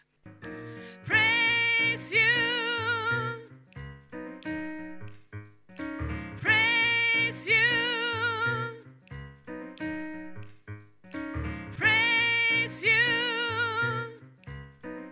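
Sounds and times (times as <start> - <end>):
soprano voice: 0.8 - 3.6, 6.4 - 8.9, 11.8 - 14.3.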